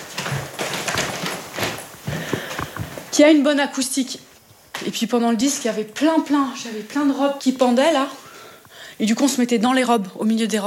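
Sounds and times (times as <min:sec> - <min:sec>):
footsteps climbing stairs up to an attic room being converted: 0:00.0 - 0:03.1
speech: 0:03.2 - 0:04.3, 0:04.9 - 0:08.2, 0:09.0 - 0:10.6.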